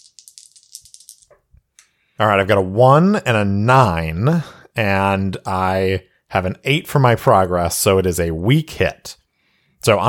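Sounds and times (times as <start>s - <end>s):
dice rolling: 0.0s - 1.5s
speech: 2.2s - 9.2s, 9.8s - 10.0s.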